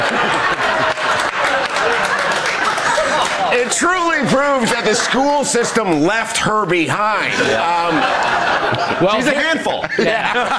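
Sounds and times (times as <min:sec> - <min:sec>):
audience clapping: 0:00.0 - 0:05.4
laughter: 0:00.0 - 0:10.5
speech: 0:03.8 - 0:10.5.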